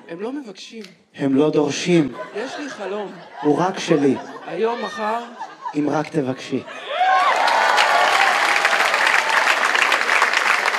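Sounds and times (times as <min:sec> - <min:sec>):
speech: 0:00.1 - 0:07.0
laughter: 0:01.8 - 0:08.0
audience applause: 0:06.9 - 0:10.7.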